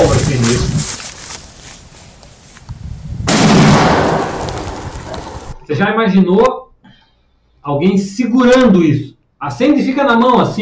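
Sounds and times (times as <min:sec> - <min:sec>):
rustling: 0:00.0 - 0:03.0, 0:03.7 - 0:05.6
airsoft bomb blast: 0:03.2 - 0:05.5
speech: 0:05.8 - 0:06.6, 0:07.6 - 0:10.6.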